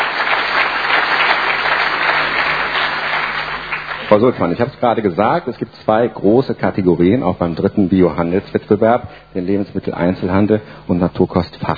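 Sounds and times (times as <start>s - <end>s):
audience applause: 0.0s - 4.4s
speech: 4.2s - 11.7s.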